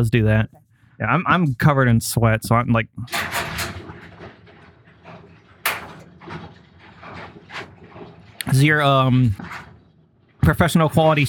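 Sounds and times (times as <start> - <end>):
speech: 0.0 - 3.4, 8.5 - 9.7, 10.4 - 11.2
garage door rumbling and rattling as it comes down: 3.0 - 11.2
low scraping of garage door: 3.0 - 11.2.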